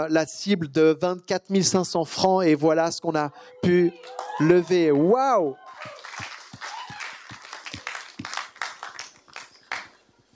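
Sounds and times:
speech: 0.0 - 6.3
audience applause: 3.9 - 10.0.

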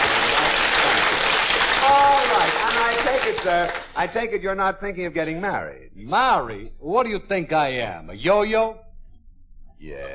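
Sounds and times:
audience applause: 0.0 - 4.1
speech: 3.3 - 8.8, 9.8 - 10.1.

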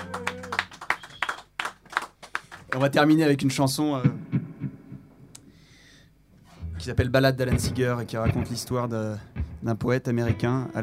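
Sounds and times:
audience applause: 0.0 - 3.0
speech: 2.8 - 4.2, 6.9 - 10.8.

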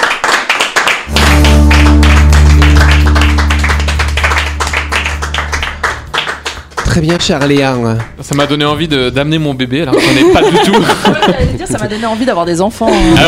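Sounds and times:
applause: 0.0 - 8.6
speech: 7.0 - 13.2
laughter: 9.9 - 12.2, 12.8 - 13.2.

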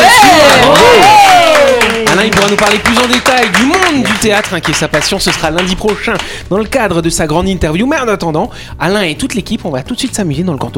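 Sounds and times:
audience cheering and whooping: 0.0 - 2.1
audience clapping: 0.0 - 6.8
speech: 2.6 - 10.7.

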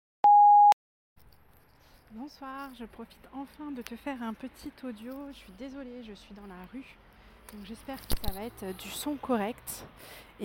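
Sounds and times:
voicemail beep: 0.2 - 0.8
speech: 2.1 - 10.4.

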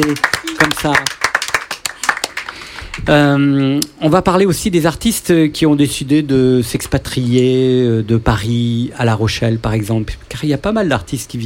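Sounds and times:
speech: 0.0 - 1.2, 3.1 - 11.4
audience applause: 0.0 - 3.1.

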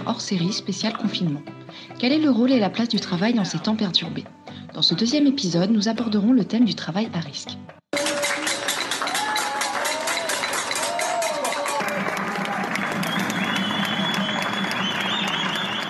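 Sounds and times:
speech: 0.1 - 7.8
people applauding health workers: 7.9 - 15.8.

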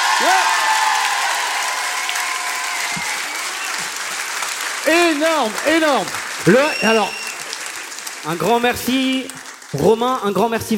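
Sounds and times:
concert audience applause at an anniversary concert in Roanne: 0.0 - 10.7
speech: 4.9 - 7.2, 8.2 - 10.7
audience whistle: 6.6 - 7.4.

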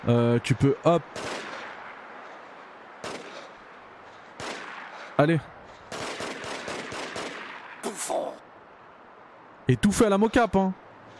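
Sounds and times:
speech: 0.0 - 1.4, 5.2 - 5.6, 9.7 - 10.8
gunshots in a Sony third-person cover-shooter video game: 1.1 - 2.0, 3.0 - 3.6, 4.4 - 5.3, 5.9 - 8.2.

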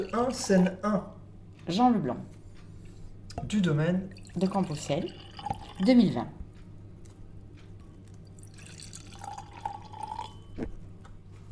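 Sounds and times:
wine pouring into a glass: 0.0 - 0.8, 4.1 - 6.0, 8.2 - 10.7
speech: 0.0 - 2.4, 3.4 - 6.4
glass clink: 4.2 - 5.9, 8.6 - 10.6.

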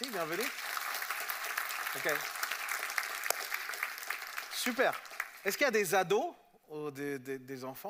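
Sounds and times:
audience applause: 0.0 - 5.7
speech: 0.2 - 0.7, 2.0 - 2.4, 4.6 - 7.8.

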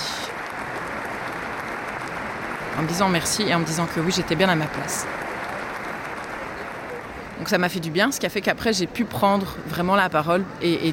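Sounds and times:
assembly applause: 0.0 - 10.9
speech: 2.8 - 5.3, 7.4 - 10.9.

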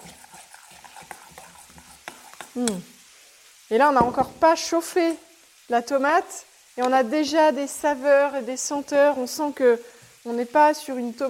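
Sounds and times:
teaspoon stirring a raw salted tomato mixture: 0.0 - 3.0
speech: 2.6 - 2.9, 3.7 - 11.2.

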